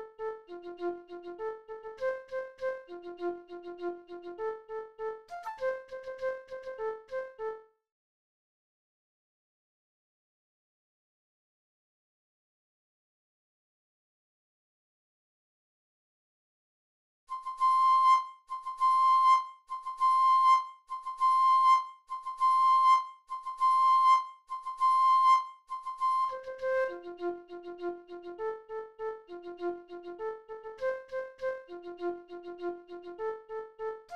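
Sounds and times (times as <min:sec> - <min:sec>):
flute playing: 0:00.0 - 0:07.6, 0:17.3 - 0:34.1.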